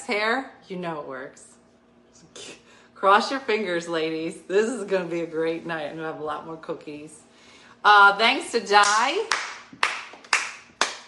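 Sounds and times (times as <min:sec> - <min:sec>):
speech: 0:00.1 - 0:01.6, 0:02.2 - 0:07.2, 0:07.8 - 0:09.9
one person clapping: 0:08.8 - 0:11.0.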